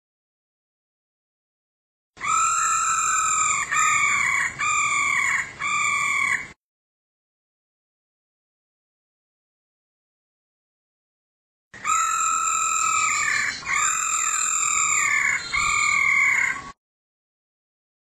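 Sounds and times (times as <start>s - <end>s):
female laughingthrush calling: 2.2s - 6.6s, 11.8s - 16.8s.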